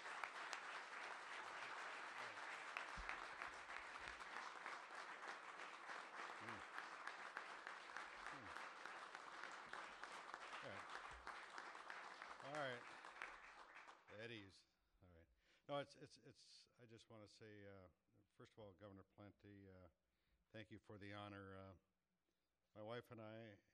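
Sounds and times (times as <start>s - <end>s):
round of applause: 0.0s - 14.4s
speech: 14.2s - 14.7s, 15.7s - 21.9s, 22.8s - 23.7s.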